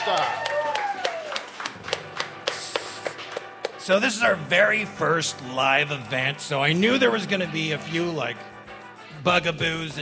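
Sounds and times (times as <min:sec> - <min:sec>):
sparse claps at a first live karaoke event: 0:00.0 - 0:03.9
speech: 0:03.9 - 0:08.5, 0:09.2 - 0:10.0.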